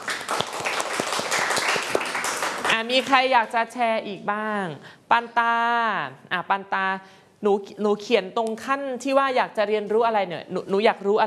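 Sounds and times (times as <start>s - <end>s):
children clapping in a classroom: 0.0s - 3.2s
speech: 2.8s - 11.2s.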